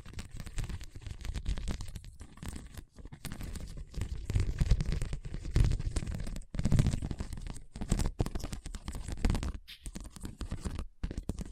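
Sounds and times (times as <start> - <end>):
scratching over a hard bumpy surface: 0.0 - 11.5.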